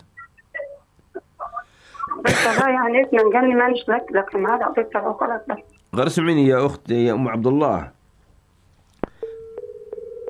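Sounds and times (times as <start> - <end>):
speech: 2.2 - 8.0
steady mid-pitched telephone line tone: 9.2 - 10.2
telephone call cutting off with a sharp click: 9.2 - 10.2.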